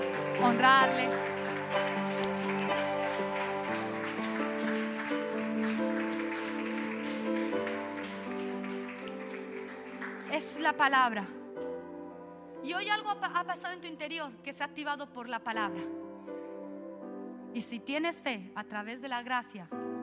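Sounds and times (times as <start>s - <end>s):
sustained organ or keyboard chords: 0.0s - 10.5s
audience applauding: 0.0s - 10.8s
speech: 0.4s - 1.3s, 10.7s - 11.4s, 12.8s - 16.1s, 17.5s - 19.8s.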